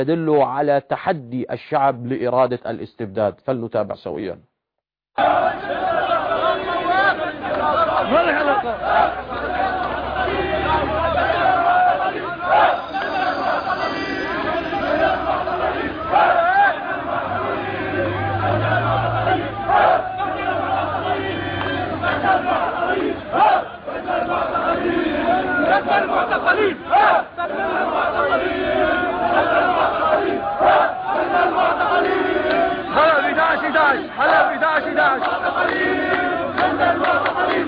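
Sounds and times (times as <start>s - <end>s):
speech: 0.0s - 4.5s, 5.2s - 5.9s, 8.0s - 9.3s
protesters chanting at sit-in outside police station: 5.2s - 37.6s
shouted cries: 5.2s - 37.6s.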